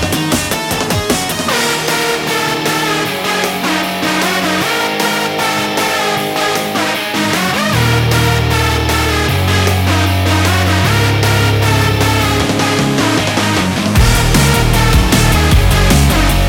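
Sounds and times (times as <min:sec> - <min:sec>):
fast beat: 0:00.0 - 0:16.4.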